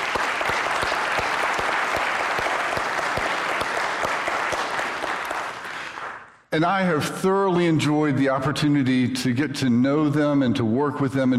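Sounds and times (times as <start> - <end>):
audience applause: 0.0 - 6.4
speech: 6.6 - 11.3.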